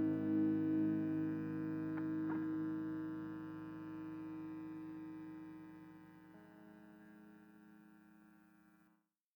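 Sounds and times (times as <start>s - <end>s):
guitar through bus effects: 0.0s - 5.7s.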